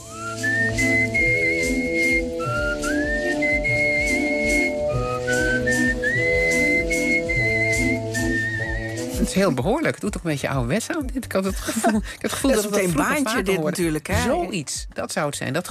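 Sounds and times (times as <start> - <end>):
artistic whistling of a melody: 0.0 - 9.5
speech: 9.3 - 15.6.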